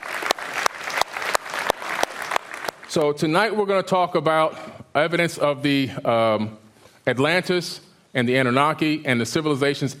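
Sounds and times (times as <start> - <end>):
audience applause: 0.0 - 3.0
speech: 2.9 - 9.9.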